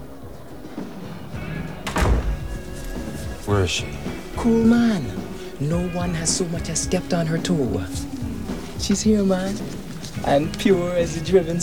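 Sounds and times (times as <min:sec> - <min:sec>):
toilet stall door closing: 0:01.4 - 0:06.9
speech: 0:03.5 - 0:08.1, 0:08.8 - 0:11.6.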